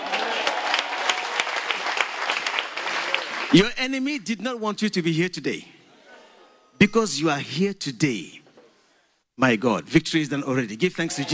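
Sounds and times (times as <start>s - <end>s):
clapping: 0.0s - 3.6s
speech: 3.5s - 5.8s, 6.8s - 8.4s, 9.4s - 11.3s.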